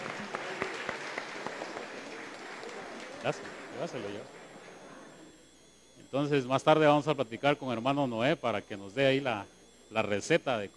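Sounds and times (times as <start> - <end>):
group applauding: 0.0 - 5.1
speech: 3.2 - 4.4, 6.1 - 10.7.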